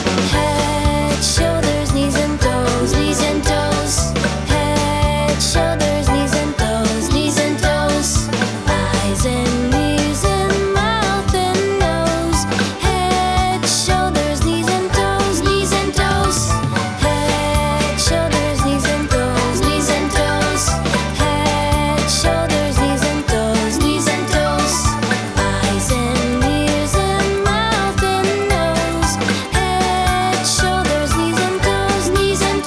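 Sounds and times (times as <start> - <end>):
children's song: 0.1 - 32.6.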